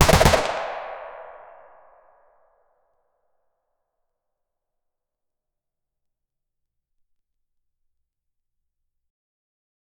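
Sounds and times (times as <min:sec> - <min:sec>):
sharp loud firearm gunshot: 0:00.0 - 0:01.6.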